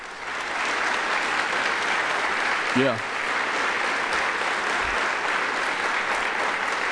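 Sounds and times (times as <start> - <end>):
audience applause from a sizable crowd: 0.0 - 6.9
speech: 2.8 - 3.1.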